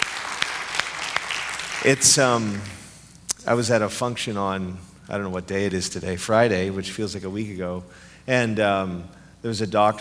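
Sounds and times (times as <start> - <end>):
audience applause: 0.0 - 2.7
speech: 1.8 - 2.8, 3.4 - 9.9.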